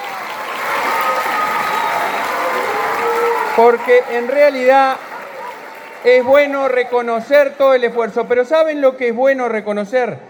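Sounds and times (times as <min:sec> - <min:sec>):
audience applause: 0:00.0 - 0:08.2
speech: 0:03.6 - 0:05.1, 0:06.0 - 0:10.2.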